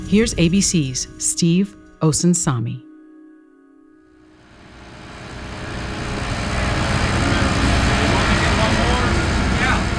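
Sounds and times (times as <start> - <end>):
speech: 0.1 - 2.8
jackhammers laying down new roads: 4.5 - 9.9.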